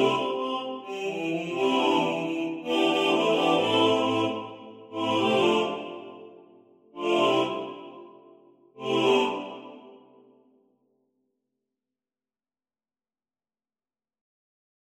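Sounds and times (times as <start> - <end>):
male choir singing with voices equally weighted: 0.0 - 6.4, 7.0 - 8.2, 8.8 - 10.1.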